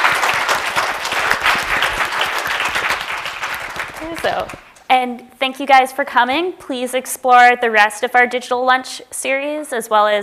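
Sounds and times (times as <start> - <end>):
audience applause: 0.0 - 4.8
speech: 4.2 - 10.2.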